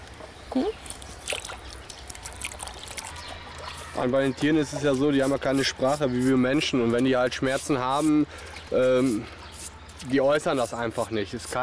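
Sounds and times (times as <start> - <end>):
speech: 0.5 - 0.8, 4.0 - 9.4, 10.0 - 11.6
water trickling and splashing while cleaning an animal's diseased foot: 0.6 - 6.0.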